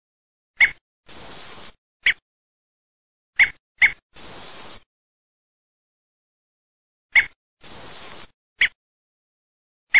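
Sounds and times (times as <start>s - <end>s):
Redwing calls: 0.6s - 2.2s, 3.4s - 4.8s, 7.2s - 8.8s.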